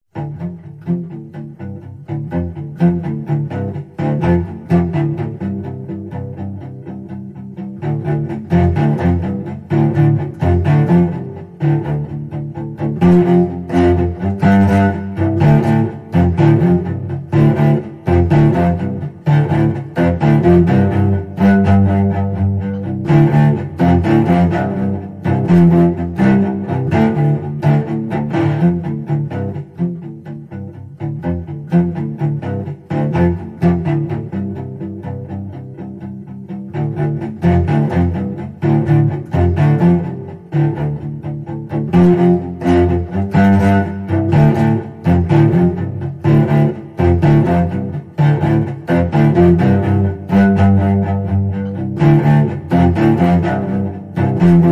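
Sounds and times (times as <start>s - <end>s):
tense action cello music: 0.1s - 54.7s.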